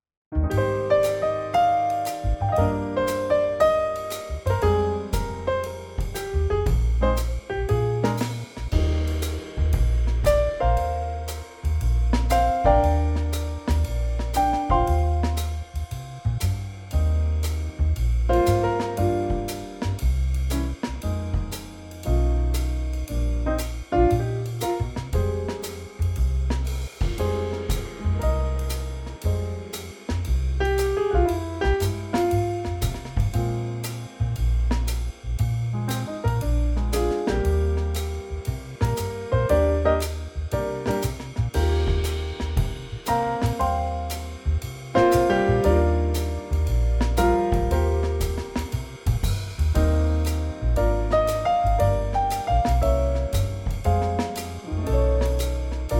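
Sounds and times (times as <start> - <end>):
swing music in E flat: 0.3 - 55.9.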